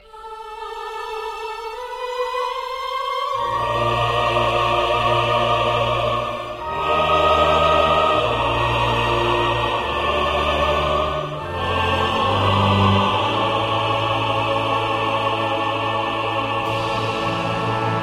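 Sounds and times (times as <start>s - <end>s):
choir singing: 0.0s - 18.0s.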